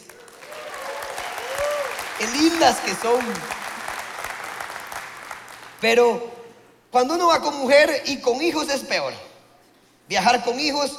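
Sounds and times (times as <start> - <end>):
audience applause: 0.0 - 5.8
speech: 2.2 - 3.6, 5.8 - 9.3, 10.1 - 10.9.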